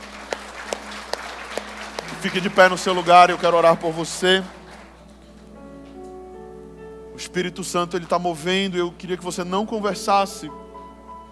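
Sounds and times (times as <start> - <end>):
audience clapping in unison: 0.0 - 5.2
low constant hum: 0.0 - 11.2
speech: 2.2 - 4.6, 7.3 - 10.6.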